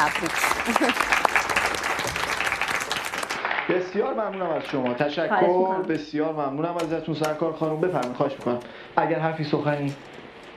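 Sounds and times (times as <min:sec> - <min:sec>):
speech: 0:00.0 - 0:02.3, 0:03.7 - 0:10.2
audience applause: 0:00.0 - 0:05.2.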